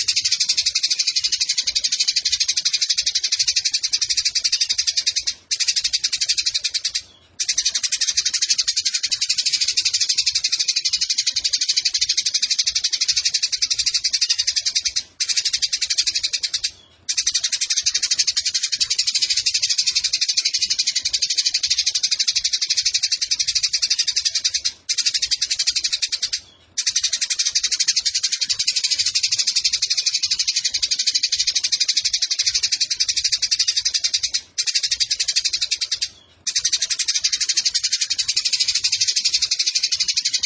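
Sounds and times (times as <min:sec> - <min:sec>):
Eurasian tree sparrow chattering: 0:00.0 - 0:40.4.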